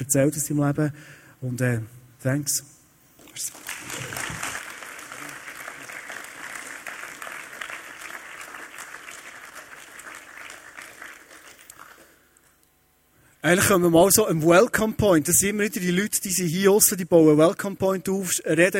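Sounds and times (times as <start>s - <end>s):
speech: 0.0s - 2.8s, 3.4s - 3.8s, 13.4s - 18.7s
audience applause: 3.4s - 12.2s.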